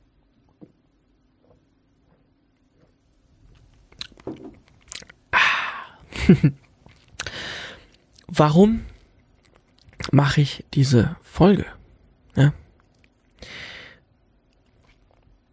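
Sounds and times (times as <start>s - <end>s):
person sipping and swallowing a drink: 1.4s - 8.3s, 8.9s - 10.1s, 14.4s - 15.5s
speech: 6.3s - 6.6s, 8.4s - 8.9s, 10.1s - 11.8s, 12.4s - 12.6s.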